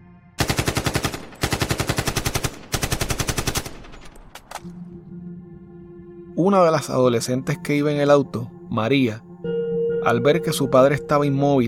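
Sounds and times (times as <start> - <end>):
gunshots fired at a car: 0.4 - 4.6
speech: 6.4 - 9.3, 10.0 - 11.6.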